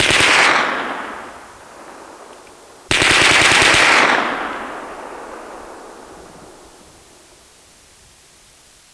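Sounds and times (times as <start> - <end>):
machine gun firing: 0.0 - 1.3, 2.9 - 5.0.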